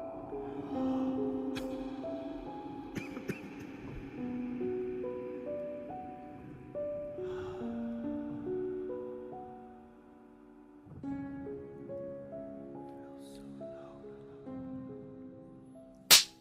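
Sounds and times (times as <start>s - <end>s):
gentle sustained melodic music: 0.0s - 16.3s
hard slap to the face: 16.1s - 16.3s.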